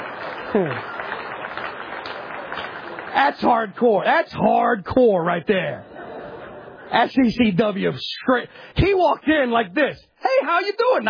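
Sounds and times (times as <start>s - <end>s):
audience applause during sermon recording: 0.0s - 3.8s
speech: 0.5s - 0.9s, 3.2s - 5.9s, 6.9s - 11.0s.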